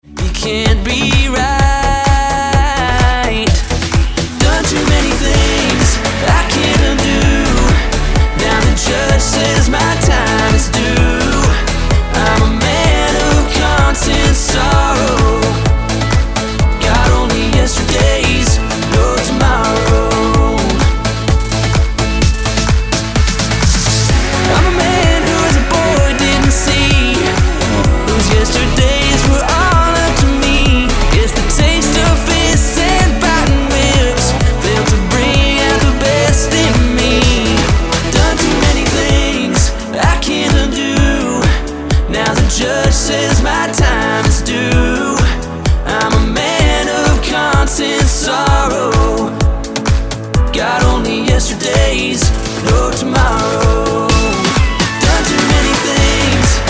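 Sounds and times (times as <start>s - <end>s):
EDM track: 0.0s - 56.6s.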